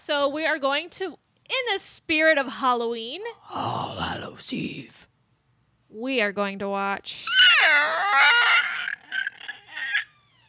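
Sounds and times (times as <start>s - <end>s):
speech: 0.0s - 5.1s, 5.9s - 8.7s
person imitating a pterodactyl screech: 7.2s - 10.4s.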